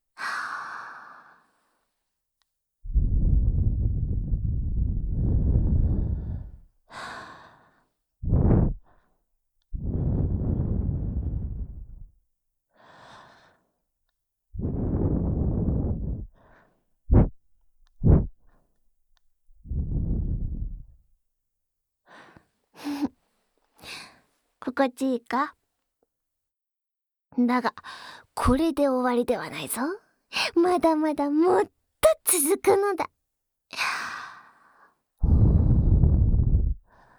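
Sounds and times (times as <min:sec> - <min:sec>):
breath blown into the ear: 0:02.9 - 0:07.1, 0:08.2 - 0:08.9, 0:09.8 - 0:12.1, 0:14.6 - 0:16.4, 0:17.1 - 0:17.4, 0:18.0 - 0:18.4, 0:19.6 - 0:21.0, 0:35.2 - 0:37.0
speech: 0:24.8 - 0:25.6, 0:27.4 - 0:33.2.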